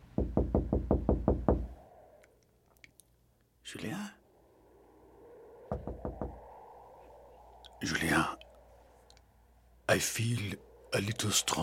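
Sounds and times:
knocking on a door: 0.2 - 1.7
speech: 3.7 - 4.2, 7.8 - 8.4, 9.9 - 11.6.

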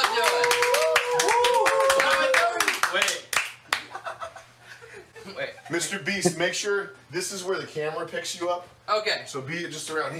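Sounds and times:
audience round of applause: 0.0 - 3.5
speech: 5.7 - 10.1.

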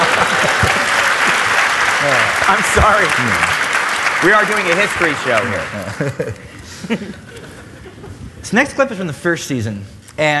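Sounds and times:
laughter: 0.0 - 1.4, 5.4 - 8.4
audience applause: 0.0 - 6.3
speech: 2.0 - 3.6, 4.2 - 7.3, 8.4 - 10.3.

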